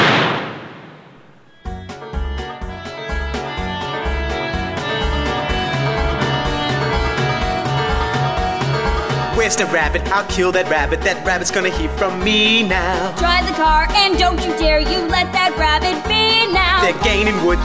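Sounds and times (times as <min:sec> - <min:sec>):
gunshot: 0:00.0 - 0:01.5
upbeat music with thumping rhythm: 0:01.7 - 0:17.6
speech: 0:09.4 - 0:17.6.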